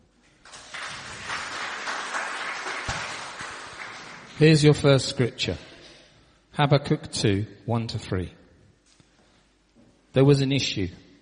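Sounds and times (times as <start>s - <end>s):
audience applause: 0.4s - 4.6s
speech: 4.4s - 5.7s, 6.6s - 8.4s, 10.1s - 11.0s.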